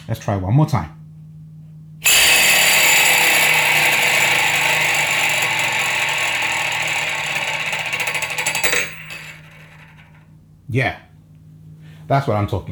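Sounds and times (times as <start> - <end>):
speech: 0.1 - 1.0, 10.7 - 11.0, 12.1 - 12.6
ring spinning around a door handle: 2.0 - 10.3.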